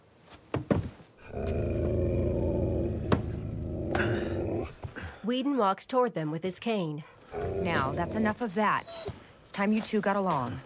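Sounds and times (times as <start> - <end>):
dog growling: 1.2 - 4.8, 7.2 - 8.4
speech: 5.3 - 10.6.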